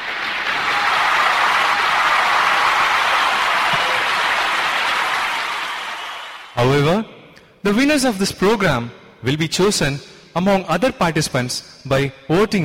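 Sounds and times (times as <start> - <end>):
audience applause: 0.0 - 6.6
speech: 7.7 - 12.6.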